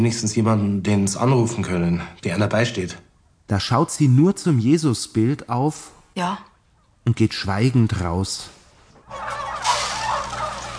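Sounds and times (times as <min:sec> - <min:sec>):
speech: 0:00.0 - 0:09.4
hundreds of fattening-barn turkeys gobbling and clucking: 0:06.6 - 0:07.0, 0:08.9 - 0:10.7.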